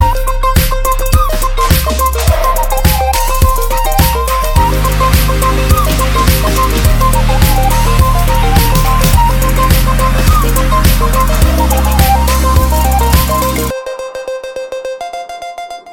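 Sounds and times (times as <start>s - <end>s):
flute: 0.0s - 14.4s.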